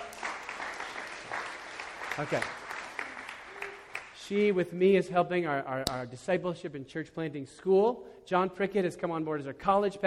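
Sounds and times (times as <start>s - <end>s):
audience clapping: 0.0s - 4.5s
speech: 2.2s - 2.6s, 4.3s - 10.0s.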